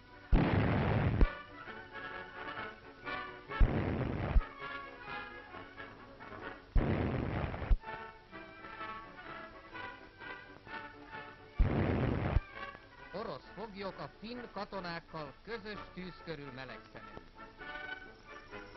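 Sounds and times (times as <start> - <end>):
artillery battery fire: 0.3 - 1.4, 3.6 - 4.5, 6.8 - 7.8, 11.6 - 12.4
speech: 13.8 - 17.2.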